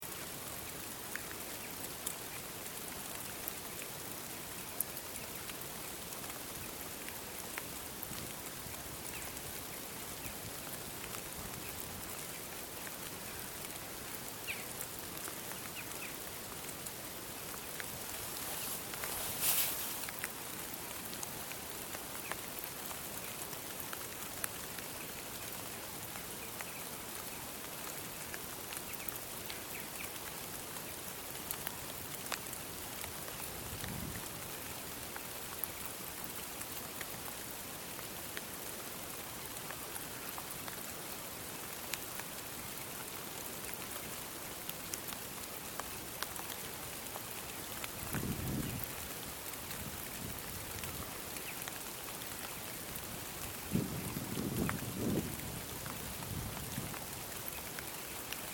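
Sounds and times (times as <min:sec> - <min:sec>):
rain: 0:00.0 - 0:58.5.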